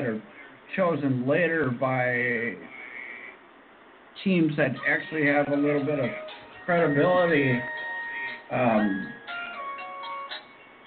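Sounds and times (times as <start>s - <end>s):
speech: 0.2s - 2.8s, 4.2s - 7.8s, 8.5s - 9.2s
mobile phone ringing: 4.8s - 10.8s.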